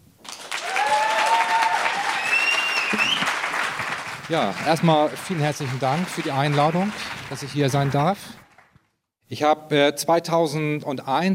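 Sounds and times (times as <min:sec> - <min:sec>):
audience applause: 0:00.2 - 0:08.8
speech: 0:04.3 - 0:08.4, 0:09.3 - 0:11.3.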